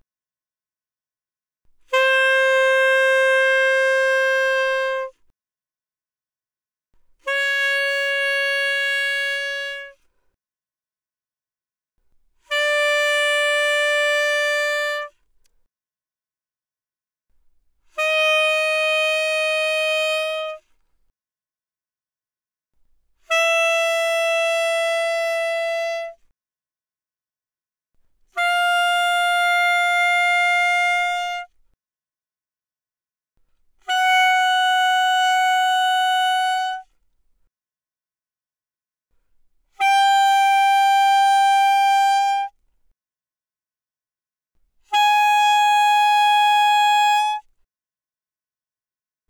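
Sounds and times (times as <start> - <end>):
alto saxophone without vibrato: 1.8 - 5.3, 7.2 - 10.0, 12.4 - 15.2, 17.9 - 20.7, 23.2 - 26.2, 28.3 - 31.6, 33.8 - 36.9, 39.7 - 42.6, 44.8 - 47.5.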